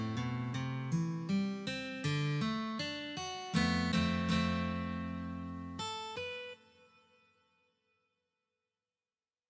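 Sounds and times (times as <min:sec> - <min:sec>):
guitar playing a rock song: 0:00.0 - 0:07.2.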